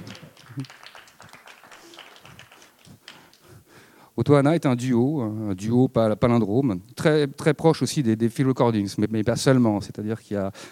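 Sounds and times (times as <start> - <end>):
audience applauding: 0.0 - 3.4
speech: 0.6 - 0.9, 4.3 - 10.7.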